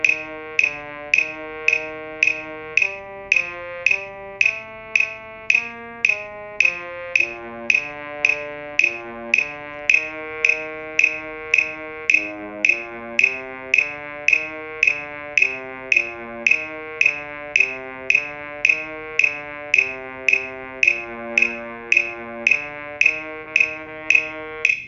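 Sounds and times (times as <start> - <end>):
low brass basses: 0.0 - 24.7.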